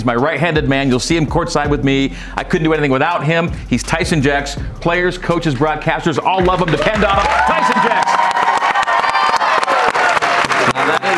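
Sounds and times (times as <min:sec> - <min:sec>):
speech: 0:00.0 - 0:08.3
audience clapping and cheering: 0:06.3 - 0:11.1.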